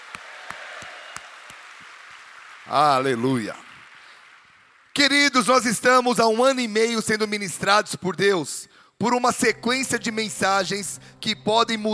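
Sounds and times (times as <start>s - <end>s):
audience applause: 0.0s - 5.0s
speech: 2.7s - 3.6s, 5.0s - 11.9s.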